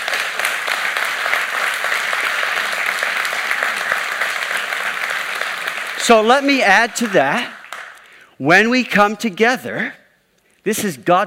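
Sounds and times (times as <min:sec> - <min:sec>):
church congregation applauding its worship and sound team: 0:00.0 - 0:08.3
speech: 0:06.1 - 0:07.6, 0:08.4 - 0:10.0, 0:10.6 - 0:11.2.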